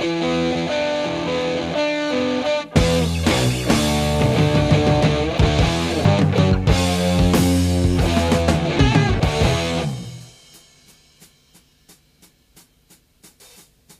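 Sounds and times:
guitar loops: 0.0s - 10.6s.

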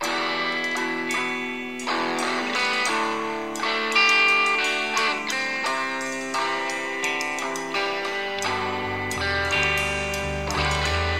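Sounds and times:
sad guitar loop: 0.0s - 11.1s.

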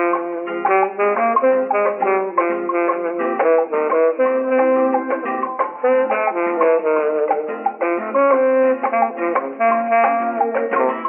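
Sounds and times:
saxophone loops: 0.0s - 11.0s.

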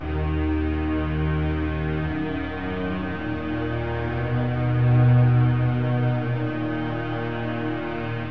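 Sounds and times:
sad string music: 0.0s - 8.2s.

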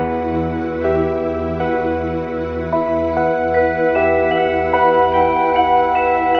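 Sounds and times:
piano: 0.0s - 6.3s.

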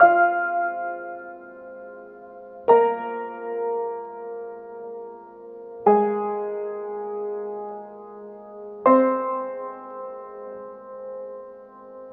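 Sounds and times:
sad piano: 0.0s - 12.1s.

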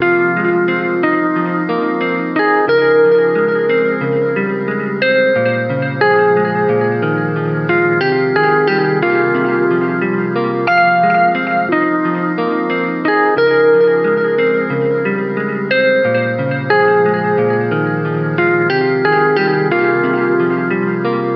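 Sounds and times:
sad guitar music: 0.0s - 21.3s.

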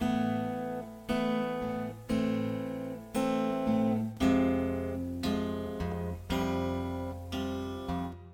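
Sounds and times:
sad guitar music: 0.0s - 8.3s.

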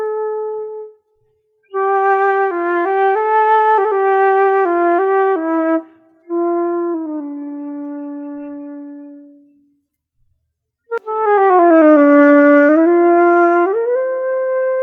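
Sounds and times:
flute playing: 1.7s - 9.6s, 10.9s - 14.8s.

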